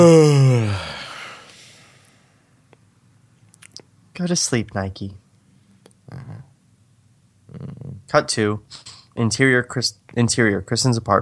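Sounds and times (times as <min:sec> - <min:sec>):
speech: 0:00.0 - 0:00.9, 0:04.2 - 0:05.2, 0:07.6 - 0:11.2
loud yawn: 0:00.0 - 0:01.8.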